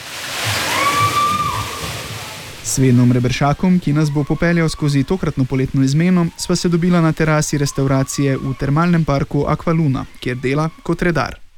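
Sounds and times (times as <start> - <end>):
rushing water at a thermal water park: 0.0 - 11.5
speech: 2.8 - 11.4.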